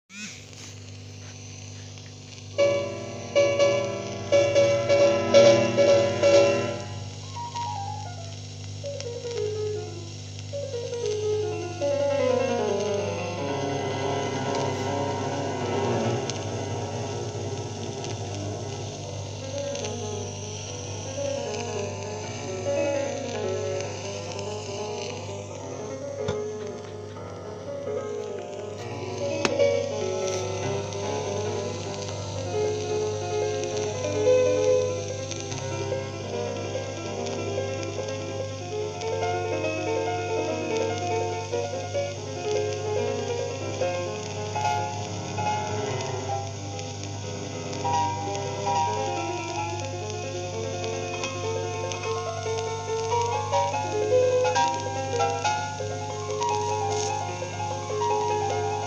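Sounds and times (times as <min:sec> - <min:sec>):
piano: 0:00.4 - 0:58.8.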